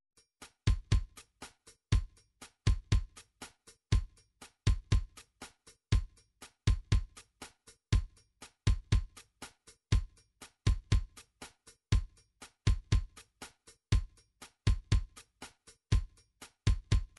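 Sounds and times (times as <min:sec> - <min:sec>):
MIDI drum patterns: 0:00.4 - 0:17.1.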